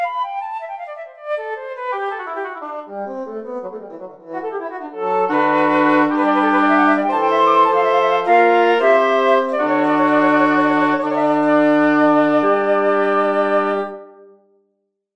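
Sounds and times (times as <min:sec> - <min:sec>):
wind instruments playing in hobbit scales: 0:00.0 - 0:14.3.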